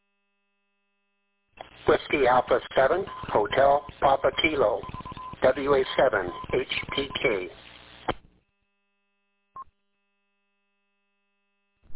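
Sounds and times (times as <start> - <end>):
radio static and hiss: 1.6 - 8.3
speech: 1.8 - 8.2
Morse code letter R tone: 2.8 - 7.5.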